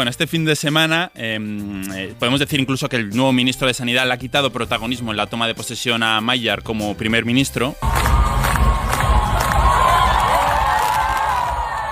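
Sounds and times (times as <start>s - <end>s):
speech: 0.0s - 8.2s
crowd cheering on the steps of the Hungarian Parliament: 7.8s - 11.9s.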